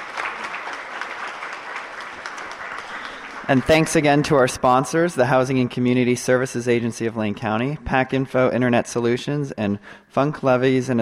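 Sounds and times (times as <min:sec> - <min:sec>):
audience applause: 0:00.0 - 0:04.8
speech: 0:03.5 - 0:11.0.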